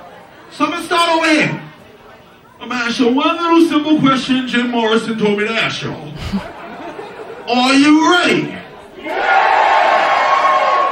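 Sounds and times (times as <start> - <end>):
speech: 0.5 - 1.6, 2.6 - 6.6, 7.5 - 9.5
laughter: 6.0 - 9.1
crowd cheering and shouting: 8.7 - 10.9.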